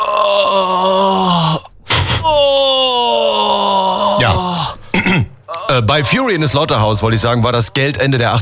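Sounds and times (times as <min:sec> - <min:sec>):
person moaning for erotic film dubbing: 0:00.0 - 0:05.8
speech: 0:05.8 - 0:08.3.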